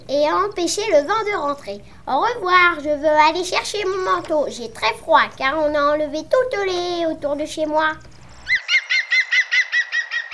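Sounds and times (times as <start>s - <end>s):
speech: 0.1s - 8.1s
bird call said to be a green woodpecker: 8.4s - 10.3s.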